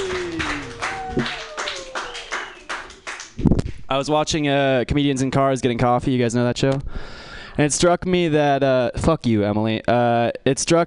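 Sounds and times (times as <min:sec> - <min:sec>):
cheers and whoops: 0:00.0 - 0:03.0
crowd applauding for a comedian: 0:00.0 - 0:03.4
speech: 0:03.9 - 0:10.8.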